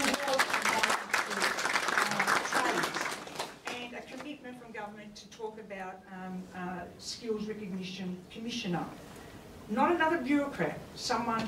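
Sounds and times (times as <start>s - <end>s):
audience applause: 0.0s - 3.8s
speech: 5.6s - 9.0s, 9.7s - 11.4s.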